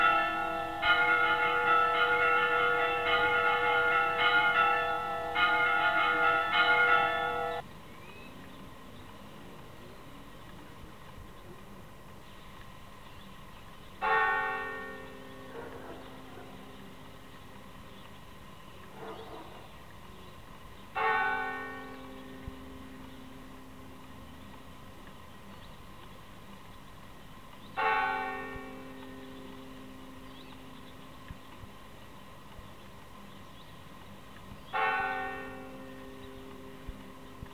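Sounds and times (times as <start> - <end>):
church bells ringing a rogation toll in Sangüesa: 0.0 - 7.7, 14.0 - 17.9, 21.0 - 25.0, 27.8 - 32.4, 34.7 - 37.5.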